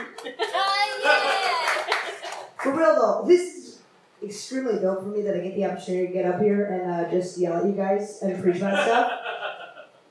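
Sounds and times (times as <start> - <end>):
laughter: 0.0 - 2.5, 8.6 - 10.0
audience applause: 0.0 - 2.8
cheering and whooping voices: 0.4 - 2.2
speech: 2.7 - 3.6, 4.2 - 9.3.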